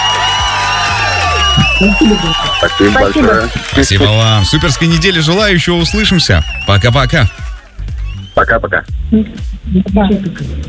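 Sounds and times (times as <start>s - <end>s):
whoops: 0.0s - 5.5s, 6.4s - 8.2s
crowd applause and cheering: 0.0s - 8.4s
speech: 1.8s - 7.5s, 8.4s - 10.6s.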